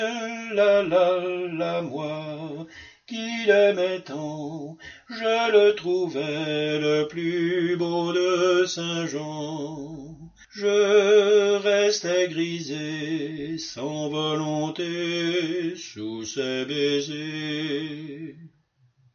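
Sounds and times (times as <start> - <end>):
tenor men singing: 0.0 - 18.5.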